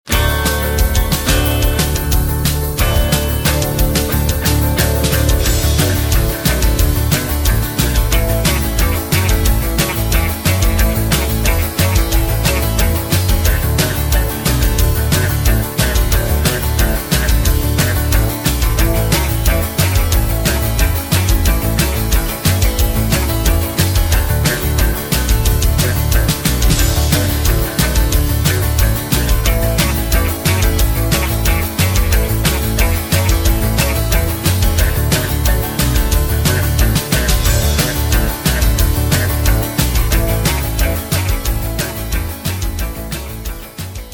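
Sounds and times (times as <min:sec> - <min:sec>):
backing track music without backing vocals: 0:00.0 - 0:44.1.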